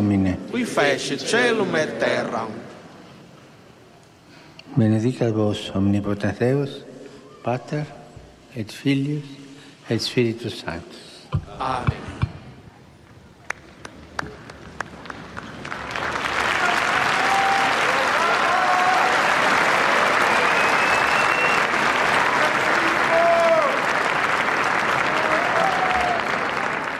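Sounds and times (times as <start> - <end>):
speech: 0.4 - 2.7, 4.8 - 12.1
crowd applause: 13.4 - 26.9
faint whistles: 20.4 - 21.8.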